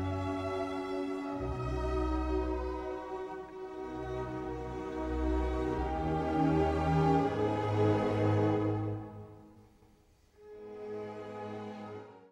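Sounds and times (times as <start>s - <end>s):
piano concerto: 0.0s - 9.4s.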